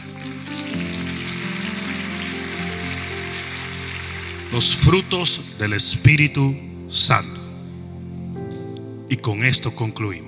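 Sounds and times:
audience applause: 0:00.0 - 0:05.7
speech: 0:04.5 - 0:07.4, 0:09.1 - 0:10.2.

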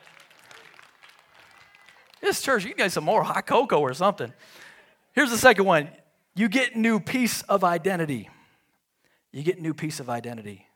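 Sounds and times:
light scattered clapping from a modest group: 0:00.0 - 0:03.0
speech: 0:02.2 - 0:08.3, 0:09.3 - 0:10.7.

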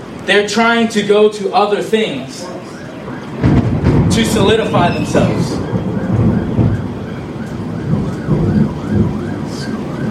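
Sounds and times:
speech: 0:00.2 - 0:02.7, 0:04.2 - 0:05.6
faint wavering siren-like tone: 0:02.4 - 0:10.0
heavy rain: 0:02.4 - 0:10.0
deep thunder rumbling: 0:02.7 - 0:10.0.

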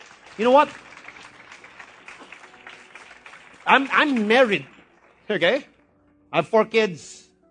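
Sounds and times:
audience applauding: 0:00.0 - 0:05.8
speech: 0:00.4 - 0:00.9, 0:03.7 - 0:04.7, 0:05.3 - 0:05.7, 0:06.3 - 0:07.2.

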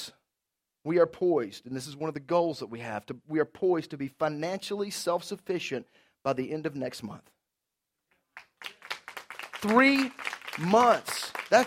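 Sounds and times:
speech: 0:00.8 - 0:07.4, 0:09.6 - 0:11.6
audience applause: 0:08.4 - 0:11.6.

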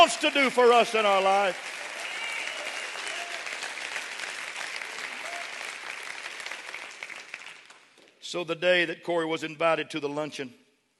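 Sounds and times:
speech: 0:00.0 - 0:01.8, 0:08.3 - 0:10.6
audience clapping hands: 0:00.0 - 0:08.2.

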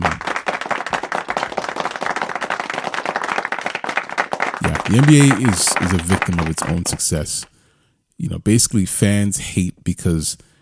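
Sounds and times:
applause sound effect: 0:00.0 - 0:07.5
speech: 0:04.8 - 0:07.5, 0:08.2 - 0:10.5.

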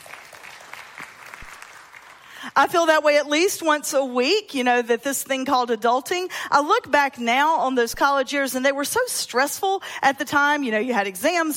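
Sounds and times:
audience applause: 0:00.0 - 0:02.4
speech: 0:02.4 - 0:11.5.

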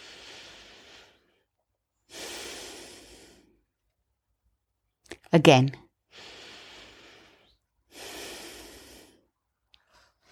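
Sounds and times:
slow deep breathing during a guided prayer exercise: 0:00.0 - 0:03.8, 0:06.1 - 0:10.3
speech: 0:05.3 - 0:05.8.

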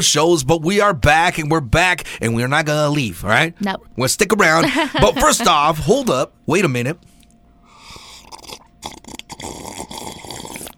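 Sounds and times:
speech: 0:00.0 - 0:07.1
laughter: 0:04.5 - 0:06.0
wet slurping sips and gulps: 0:07.1 - 0:10.7
drink pouring: 0:07.9 - 0:10.7.

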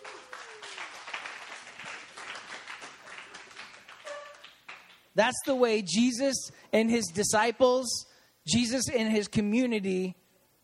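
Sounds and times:
audience applause: 0:00.0 - 0:05.0
speech: 0:05.2 - 0:10.2.

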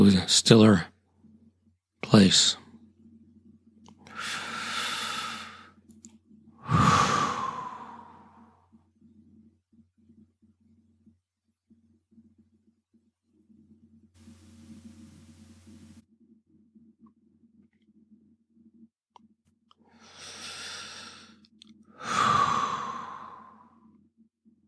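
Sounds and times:
speech: 0:00.0 - 0:00.9, 0:02.1 - 0:02.6
slow meditation breathing: 0:04.0 - 0:05.7, 0:06.6 - 0:08.5, 0:19.9 - 0:21.4, 0:22.0 - 0:23.7.

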